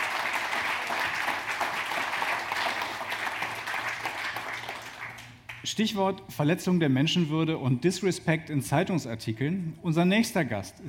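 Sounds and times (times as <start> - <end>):
sustained audience applause: 0.0 - 5.6
speech: 5.7 - 10.8.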